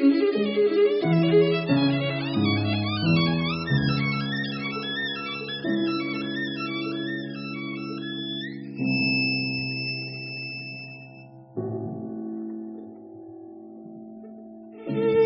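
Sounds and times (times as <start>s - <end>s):
violin: 0.0s - 9.5s, 14.7s - 15.2s.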